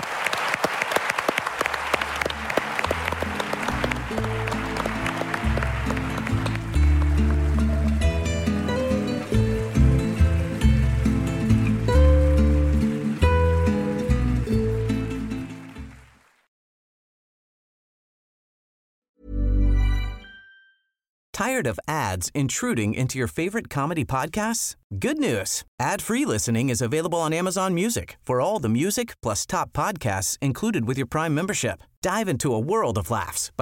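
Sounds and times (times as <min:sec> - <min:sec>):
audience applause at a comedy festival show: 0:00.0 - 0:16.5
speech: 0:21.4 - 0:33.6.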